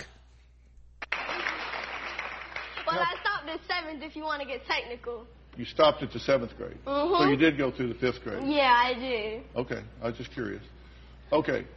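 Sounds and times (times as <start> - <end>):
audience applause from a video: 1.0 - 3.4
speech: 3.0 - 11.7.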